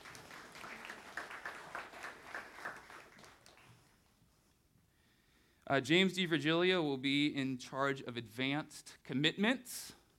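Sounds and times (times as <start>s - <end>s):
audience clapping: 0.0s - 4.1s
speech: 5.7s - 10.0s.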